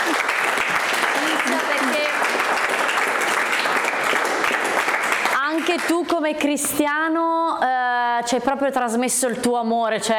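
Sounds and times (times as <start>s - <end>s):
audience applause: 0.0s - 5.9s
speech: 5.8s - 10.1s.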